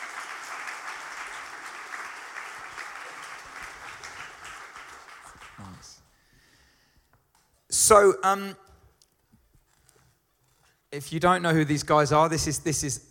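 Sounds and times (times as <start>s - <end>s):
audience applause welcoming two guests onto a stage: 0.0s - 6.2s
speech: 7.9s - 8.6s, 11.0s - 13.0s.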